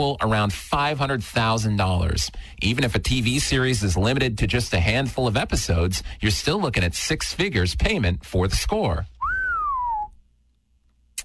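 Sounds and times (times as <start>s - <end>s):
speech: 0.0s - 9.2s
person whistling in place of sound effect: 9.2s - 10.2s.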